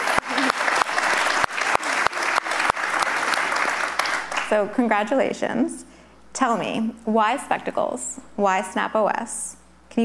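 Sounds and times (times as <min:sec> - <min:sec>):
audience applause: 0:00.0 - 0:04.6
speech: 0:04.5 - 0:10.0.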